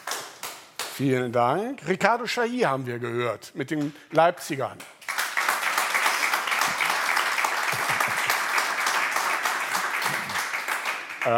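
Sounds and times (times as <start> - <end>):
speech: 1.0 - 5.0
audience applause: 5.1 - 11.3.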